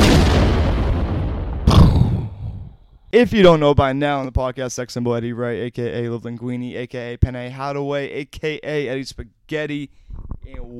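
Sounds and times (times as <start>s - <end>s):
bomb explosion sound effect: 0.0s - 2.9s
speech: 3.1s - 10.7s.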